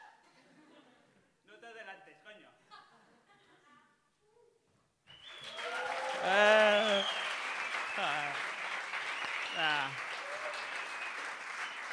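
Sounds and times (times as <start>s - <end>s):
audience clapping: 5.2s - 11.9s
people whooping: 5.4s - 8.4s, 9.1s - 11.9s.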